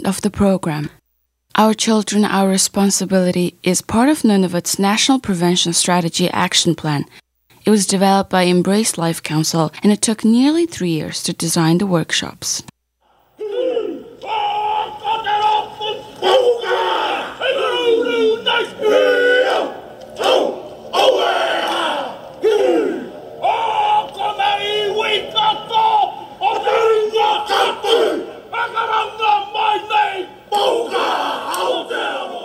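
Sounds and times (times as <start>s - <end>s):
speech: 0.1s - 1.0s, 1.6s - 12.7s
haka war dance chant by a New Zealand biker gang: 13.1s - 32.4s.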